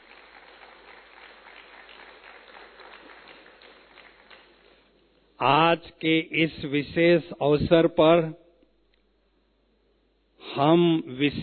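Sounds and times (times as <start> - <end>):
audience applause: 0.0 - 4.8
speech: 5.4 - 8.4, 10.6 - 11.4.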